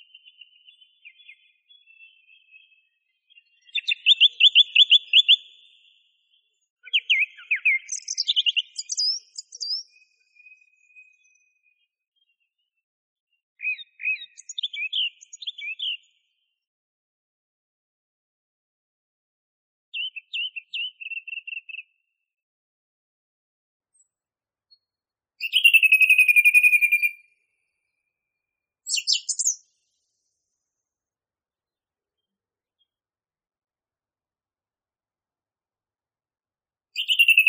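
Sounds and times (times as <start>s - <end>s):
song thrush singing: 0.0s - 12.8s, 13.6s - 16.2s, 19.9s - 22.0s, 24.8s - 27.3s, 28.9s - 29.7s, 37.0s - 37.4s.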